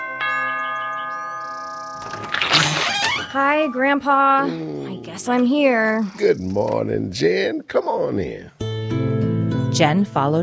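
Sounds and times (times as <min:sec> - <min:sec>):
doorbell ringing: 0:00.0 - 0:04.0
speech: 0:03.3 - 0:08.6, 0:09.8 - 0:10.4.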